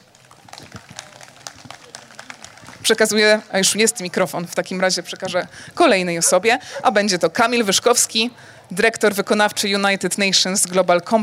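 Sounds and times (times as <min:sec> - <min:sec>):
audience clapping for guest taking stage: 0:00.0 - 0:03.8
speech: 0:02.9 - 0:11.2.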